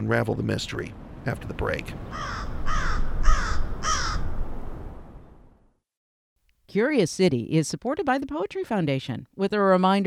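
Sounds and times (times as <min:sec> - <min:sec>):
speech: 0:00.0 - 0:03.0, 0:06.7 - 0:10.0
crows cawing: 0:02.1 - 0:04.4.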